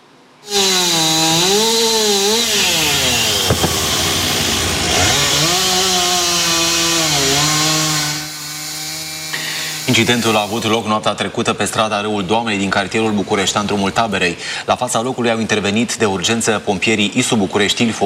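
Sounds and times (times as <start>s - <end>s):
chainsaw cutting up a fallen tree: 0.4s - 10.8s
wood cracking as a piece gives way: 3.1s - 4.4s
speech: 10.0s - 18.0s.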